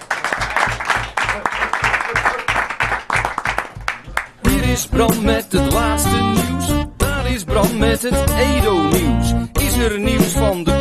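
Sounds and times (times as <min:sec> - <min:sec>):
crowd applause: 0:00.0 - 0:04.4
speech: 0:04.7 - 0:10.8.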